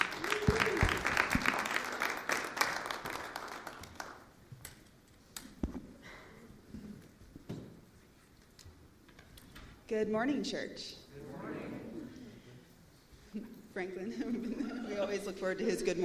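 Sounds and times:
church congregation applauding to welcome guests: 0.0s - 4.4s
speech: 9.9s - 11.0s, 13.8s - 16.0s
laughter: 14.1s - 16.0s.

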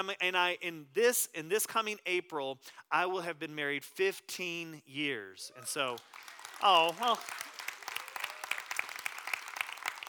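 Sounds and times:
speech: 0.0s - 7.5s
audience clapping for a married man's joke: 5.6s - 10.0s.

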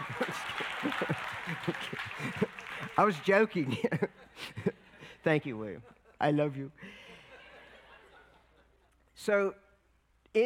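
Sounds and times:
audience clapping: 0.0s - 4.1s
laughter: 0.0s - 5.1s, 6.8s - 9.0s
speech: 3.0s - 4.2s, 5.2s - 6.8s, 9.2s - 9.6s.

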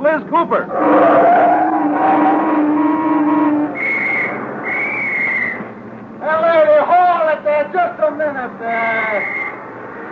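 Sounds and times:
speech: 0.0s - 1.2s
car speeding toward the curb with steady engine whine: 0.2s - 10.1s
sharp high-pitched whistle blasts: 2.8s - 5.7s, 9.0s - 9.6s.

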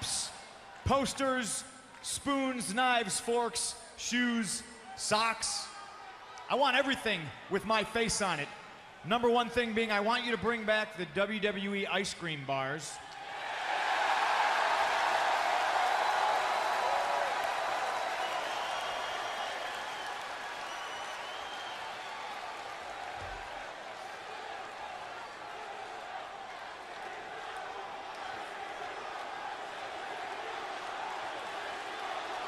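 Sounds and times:
speech: 0.9s - 5.7s, 6.5s - 13.1s
crowd cheering: 13.0s - 32.4s
crowd applause: 13.6s - 32.4s.

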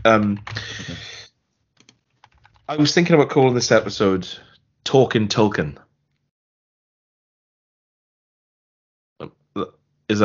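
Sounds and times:
speech: 0.0s - 1.1s, 2.7s - 5.8s, 9.2s - 10.2s
typing on a computer keyboard: 0.0s - 1.2s, 1.8s - 3.0s.

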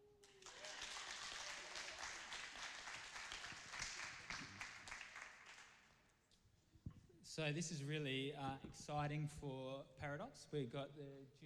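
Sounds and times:
audience clapping: 0.2s - 6.0s
speech: 7.4s - 11.4s.

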